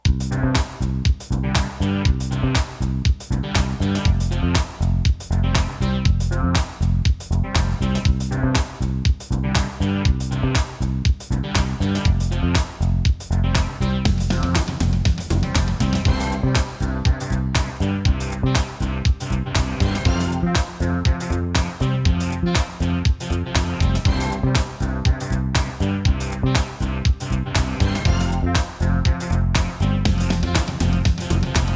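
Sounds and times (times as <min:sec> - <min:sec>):
house music: 0:00.0 - 0:31.7.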